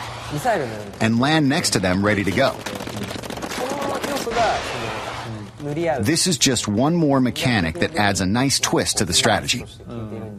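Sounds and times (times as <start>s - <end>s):
ink guns firing in a video game: 0.0s - 5.7s
speech: 0.3s - 3.2s, 4.2s - 4.9s, 5.6s - 10.3s.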